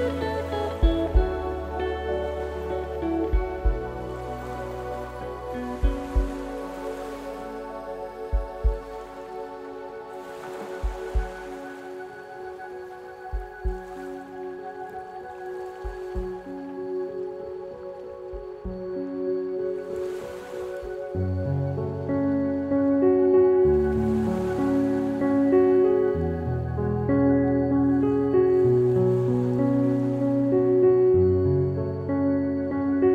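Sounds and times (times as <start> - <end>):
background music: 0.0 - 33.1.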